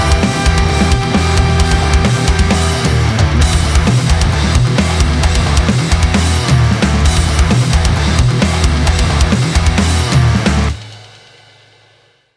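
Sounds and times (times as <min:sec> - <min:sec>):
emotional rock music: 0:00.0 - 0:10.8.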